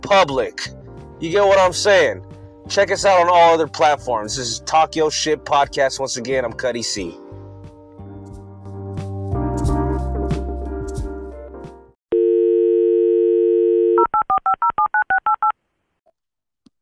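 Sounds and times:
speech: 0.0 - 7.3
music: 0.0 - 12.0
phone dial tone: 12.1 - 15.4
phone keypad beeping tones: 13.4 - 15.5.

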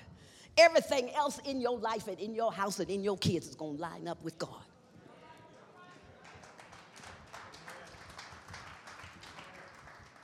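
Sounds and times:
speech: 0.6 - 4.7
crowd clapping: 5.9 - 10.2.

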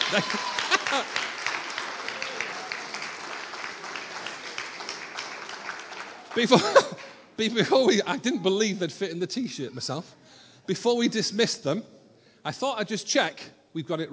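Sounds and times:
laughter: 0.0 - 1.4, 6.4 - 8.8
crowd clapping: 0.0 - 7.9
speech: 0.1 - 1.3, 6.4 - 14.1.

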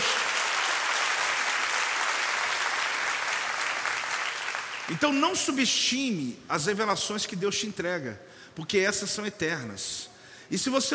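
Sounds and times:
audience applause: 0.0 - 5.0
speech: 4.9 - 10.9.

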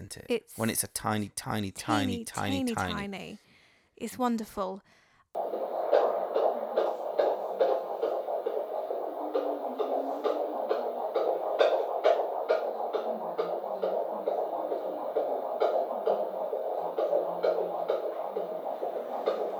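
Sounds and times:
speech: 0.1 - 5.6
fetal heartbeat on ultrasound Doppler monitor: 5.4 - 19.5.

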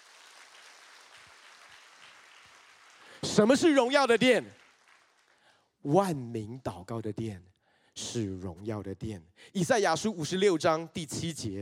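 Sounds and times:
audience applause: 0.0 - 5.4
speech: 3.2 - 4.6, 5.8 - 11.5.

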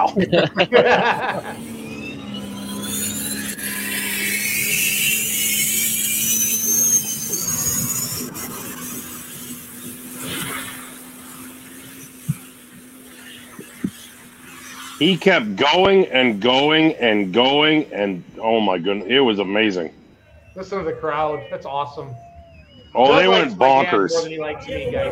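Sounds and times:
laughter: 0.0 - 1.7
speech: 0.0 - 1.7, 15.0 - 20.0, 20.6 - 22.2, 22.9 - 25.1
tractor engine running: 0.0 - 25.1
sharp pops: 2.9 - 15.0.

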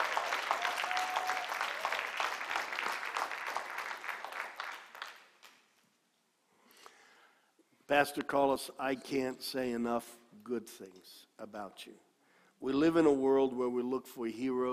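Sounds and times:
church congregation applauding as a pastor comes to the stage: 0.0 - 5.8
speech: 7.9 - 14.7.

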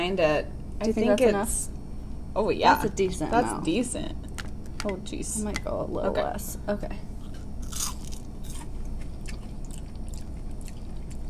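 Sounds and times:
speech: 0.0 - 7.1
low steady hum: 0.0 - 11.2
someone biting and chewing a french fry dipped in mayonnaise: 7.2 - 11.2.

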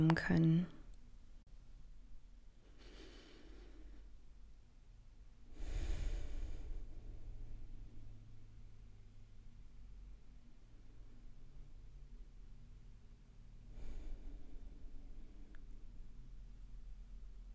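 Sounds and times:
speech: 0.0 - 0.8
hiss: 0.0 - 17.5
slow deep breaths during a guided mindfulness exercise: 2.6 - 4.3, 5.5 - 8.6, 13.6 - 16.2.

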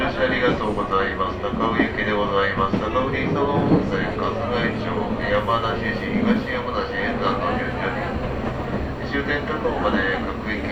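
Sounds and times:
steady low rumble of the moving Chuo Line local train: 0.0 - 10.7
crowd of high school students chattering inside a Chuo Line local train: 2.3 - 10.7.

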